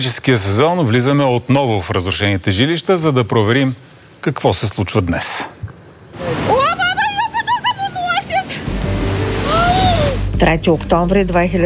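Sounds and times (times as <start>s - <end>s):
speech: 0.0s - 5.6s, 10.4s - 11.6s
floodwater rushing: 6.1s - 10.4s
woman crying out in distress: 9.4s - 10.3s.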